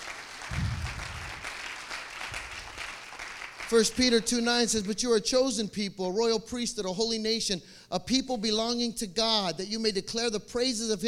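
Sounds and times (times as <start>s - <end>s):
audience applause: 0.0s - 3.7s
speech: 3.7s - 11.0s.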